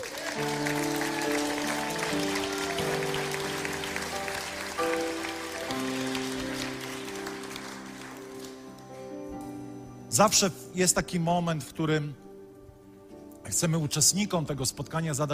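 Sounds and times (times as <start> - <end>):
audience clapping: 0.0 - 9.1
speech: 0.4 - 0.7, 10.2 - 12.2, 13.5 - 15.3
sustained music chords: 0.4 - 10.2.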